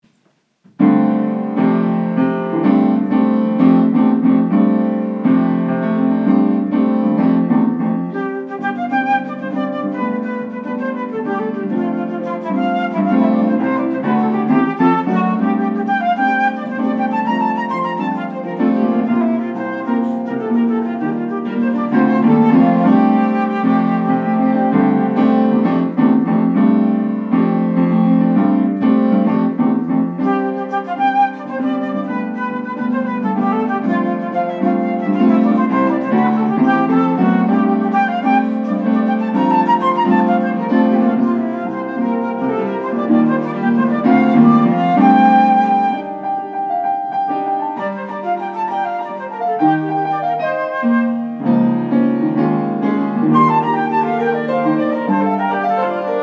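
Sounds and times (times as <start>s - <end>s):
flute playing a jig: 0.8s - 56.2s.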